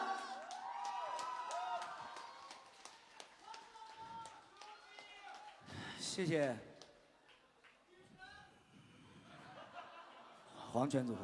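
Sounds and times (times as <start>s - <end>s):
audience applause: 0.0s - 5.7s
speech: 6.2s - 6.7s, 10.8s - 11.2s
laughter: 9.1s - 11.2s.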